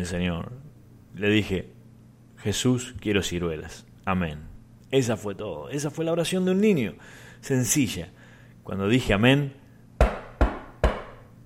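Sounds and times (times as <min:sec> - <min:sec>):
speech: 0:00.0 - 0:00.6, 0:01.2 - 0:01.8, 0:02.4 - 0:10.1
knocking on a door: 0:10.0 - 0:11.2.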